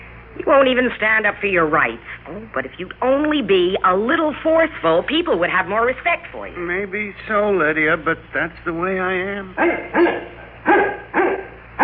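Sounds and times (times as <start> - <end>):
speech: 0.4 - 11.0
dog barking at the door: 9.6 - 11.8.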